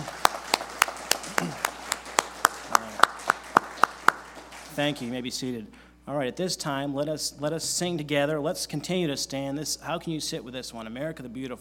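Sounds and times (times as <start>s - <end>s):
audience round of applause: 0.0s - 5.2s
speech: 4.8s - 11.6s.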